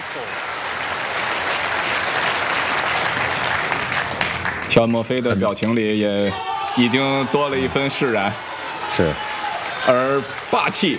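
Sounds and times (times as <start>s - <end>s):
snooker crowd at the Crucible applauding: 0.0s - 5.2s, 6.3s - 10.9s
speech: 0.2s - 0.5s, 4.7s - 10.9s.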